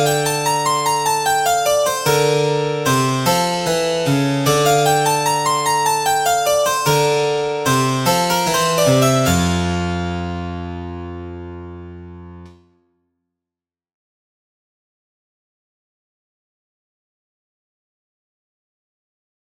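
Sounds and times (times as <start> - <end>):
piano: 0.0 - 12.8.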